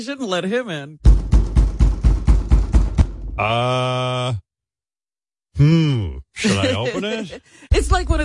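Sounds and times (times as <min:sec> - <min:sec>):
speech: 0:00.0 - 0:01.1, 0:03.4 - 0:04.4, 0:05.6 - 0:08.2
pounding knock on a door: 0:01.0 - 0:03.4
laughter: 0:06.4 - 0:07.7.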